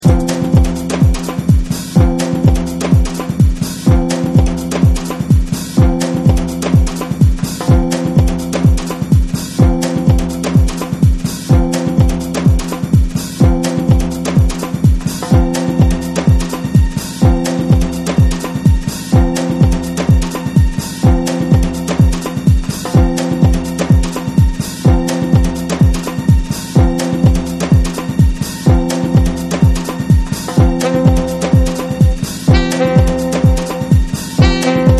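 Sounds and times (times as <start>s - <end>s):
electronic music: 0.0s - 34.9s.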